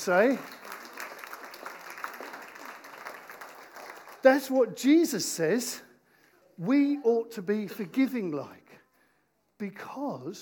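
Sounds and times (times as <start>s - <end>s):
speech: 0.0s - 0.6s, 4.2s - 5.9s, 6.6s - 8.6s, 9.6s - 10.4s
audience applause for participants at a talk on forgiveness: 0.0s - 4.6s.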